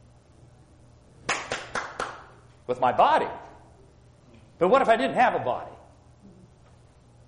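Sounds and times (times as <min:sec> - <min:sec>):
hands clapping: 0:01.3 - 0:02.3
speech: 0:02.7 - 0:03.4, 0:04.6 - 0:05.8.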